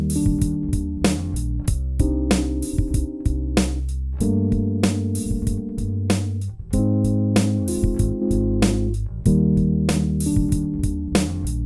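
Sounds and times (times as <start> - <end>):
distorted Rhodes electric piano: 0.0 - 11.6.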